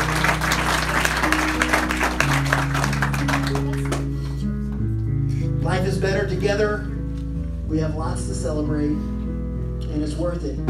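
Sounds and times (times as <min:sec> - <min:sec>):
church congregation at Riverbend Church applauding to welcome a group: 0:00.0 - 0:04.4
sustained low musical tones: 0:00.0 - 0:10.6
speech: 0:06.4 - 0:06.9, 0:07.7 - 0:09.1, 0:10.0 - 0:10.6.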